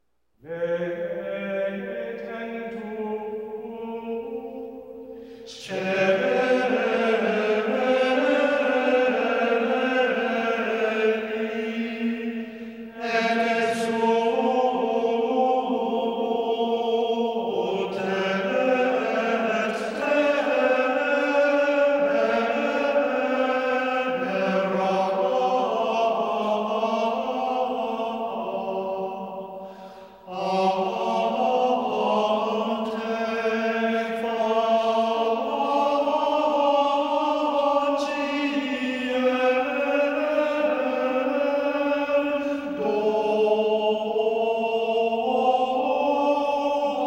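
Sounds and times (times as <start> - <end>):
Gregorian chant at Midnight Mass offertory: 0.4 - 47.0.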